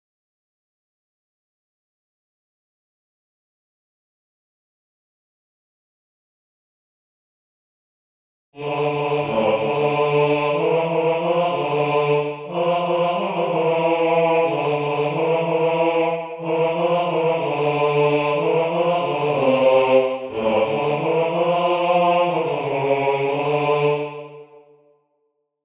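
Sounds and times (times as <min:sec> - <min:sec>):
tenor singing: 0:08.6 - 0:24.6.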